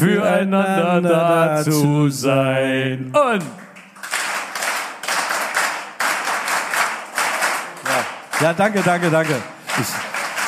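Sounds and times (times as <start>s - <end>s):
speech: 0.0s - 3.6s, 8.4s - 10.0s
audience applause: 3.6s - 10.4s.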